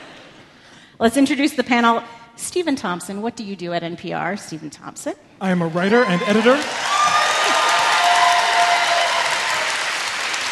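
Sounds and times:
speech: 1.0 - 6.9
audience applause: 5.7 - 10.5
faint cheering: 5.8 - 10.5.

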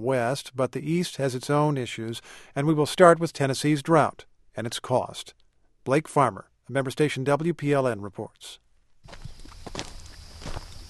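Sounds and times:
speech: 0.0 - 9.9
footsteps of a farmer walking on dry dusty ground near Fairview, Tennessee: 9.0 - 10.8.

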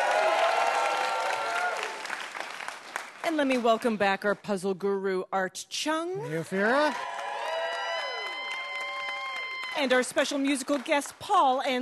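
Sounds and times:
audience applause for a celebrity guest at a live puzzle game show: 0.0 - 3.3, 6.6 - 11.4
speech: 3.3 - 7.2, 9.8 - 11.8.

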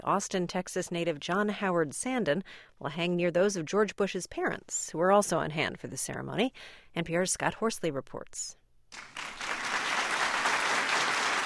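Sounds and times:
speech: 0.0 - 9.3
room full of people applauding: 8.9 - 11.4.

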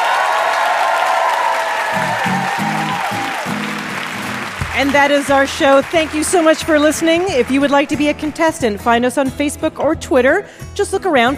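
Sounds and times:
audience applause at a live quiz show for guest Neil Gaiman: 0.0 - 8.2
speech: 4.8 - 11.3.

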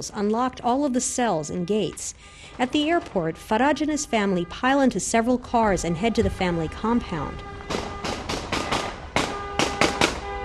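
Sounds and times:
speech: 0.0 - 7.9
celebratory gunfire into the air: 7.7 - 10.3.

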